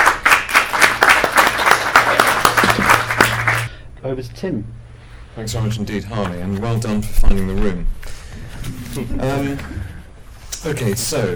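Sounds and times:
audience round of applause: 0.0s - 3.7s
speech: 4.0s - 9.9s, 10.6s - 11.3s.

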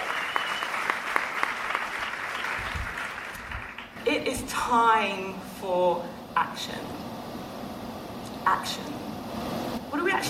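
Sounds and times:
live audience applauding at IFC 2019: 0.0s - 4.0s
speech: 4.2s - 7.2s, 8.5s - 10.2s.

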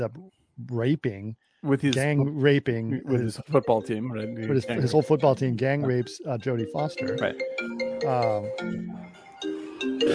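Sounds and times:
speech: 0.0s - 10.1s
phone notification chime with bright electronic tones: 3.5s - 10.1s.

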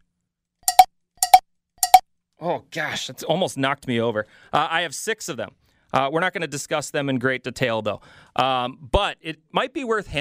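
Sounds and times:
bell ringing: 0.7s - 2.0s
speech: 2.4s - 10.1s.

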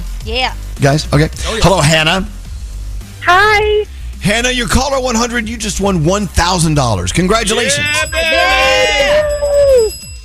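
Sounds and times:
speech: 0.2s - 2.4s, 3.2s - 8.6s
cheesy buzzy winner bell sound effect: 7.4s - 10.2s.

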